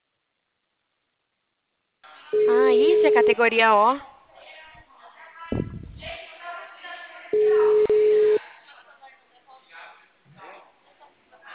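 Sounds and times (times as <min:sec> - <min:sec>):
people talking over the phone line: 0:02.3 - 0:04.0, 0:07.0 - 0:08.4
speech: 0:02.3 - 0:04.1
telephone busy tone after a dropped call: 0:02.4 - 0:03.4, 0:07.4 - 0:08.4.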